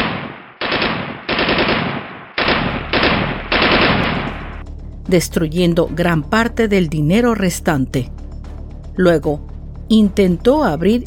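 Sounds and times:
automatic gunfire: 0:00.0 - 0:04.6
speech: 0:05.1 - 0:08.2, 0:09.0 - 0:11.0.

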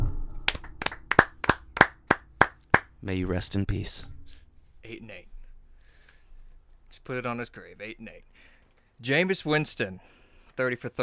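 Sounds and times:
hand claps: 0:00.5 - 0:02.9
speech: 0:03.0 - 0:04.1, 0:07.0 - 0:11.0.

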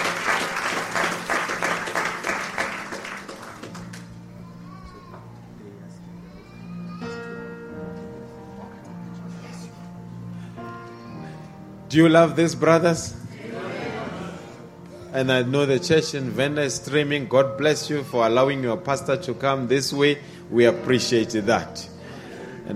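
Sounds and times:
audience applause: 0:00.0 - 0:04.3
speech: 0:11.9 - 0:13.2, 0:15.2 - 0:21.9.

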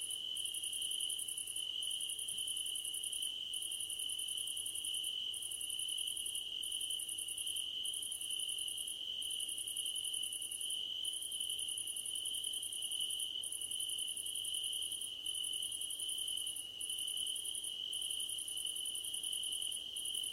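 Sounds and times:
cricket chorus chirping: 0:00.0 - 0:20.3.

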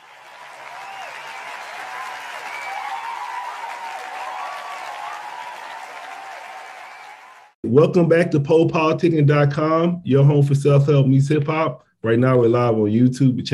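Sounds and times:
audience applause greeting the host of a hip-hop and self-help show: 0:00.0 - 0:07.6
speech: 0:07.7 - 0:13.5.

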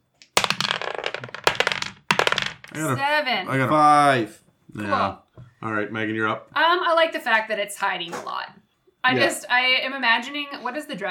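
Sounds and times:
dice being rolled: 0:00.2 - 0:02.8
speech: 0:02.8 - 0:11.0.

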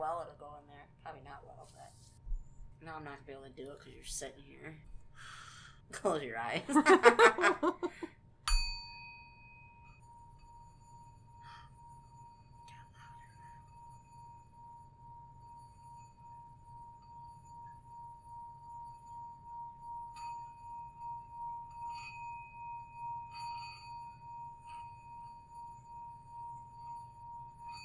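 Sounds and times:
speech: 0:02.8 - 0:08.0
laughter: 0:06.6 - 0:08.1
crystal singing bowl ringing: 0:08.5 - 0:27.8.

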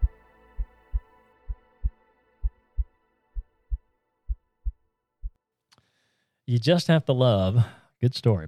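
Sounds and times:
heart beating: 0:00.0 - 0:05.4
speech: 0:06.5 - 0:08.4.

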